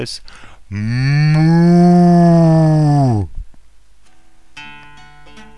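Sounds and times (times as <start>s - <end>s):
mooing: 0.8s - 3.3s.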